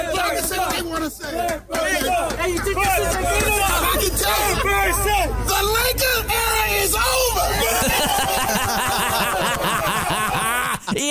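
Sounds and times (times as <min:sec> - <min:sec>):
basketball crowd booing: 0:00.0 - 0:10.9
laughter: 0:00.0 - 0:11.0
speech: 0:00.8 - 0:09.4.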